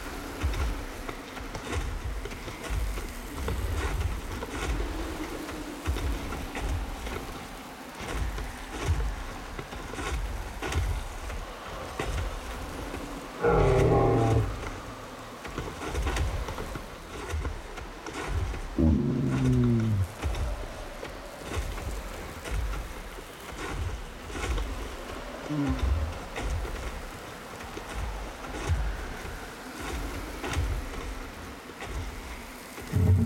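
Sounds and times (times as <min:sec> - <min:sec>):
desert ambience: 0:00.0 - 0:33.2.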